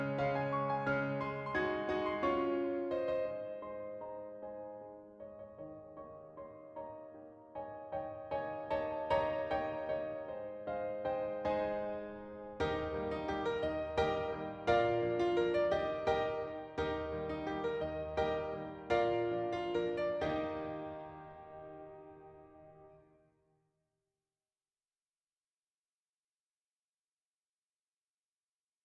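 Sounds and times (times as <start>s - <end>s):
pianoforte waltz: 0.0s - 23.0s.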